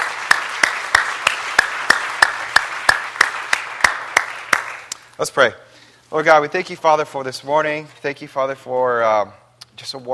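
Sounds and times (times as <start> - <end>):
audience applause: 0.0 - 5.0
speech: 5.2 - 10.1.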